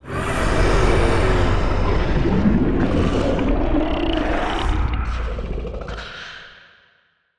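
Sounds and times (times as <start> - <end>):
distant abstract monster scream: 0.0 - 5.7.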